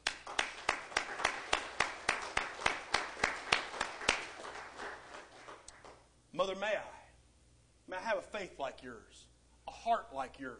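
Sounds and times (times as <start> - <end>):
audience applause: 0.0 - 6.0
speech: 6.4 - 6.9, 7.9 - 10.5.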